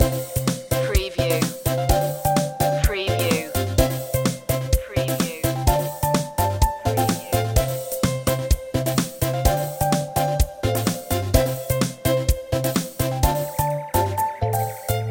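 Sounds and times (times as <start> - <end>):
playtime music loop: 0.0 - 15.0.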